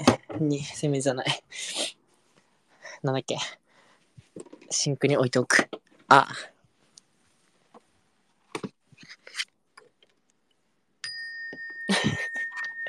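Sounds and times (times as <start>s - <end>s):
speech: 0.4s - 1.7s, 3.0s - 3.6s, 4.4s - 6.5s
small musical instrument played in a room with a bell-like ring: 11.0s - 12.8s.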